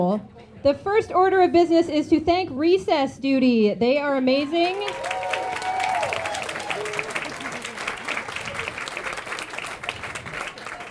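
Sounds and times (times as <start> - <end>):
speech: 0.0 - 5.2
people cheering: 4.4 - 10.8
audience clapping: 4.6 - 10.8.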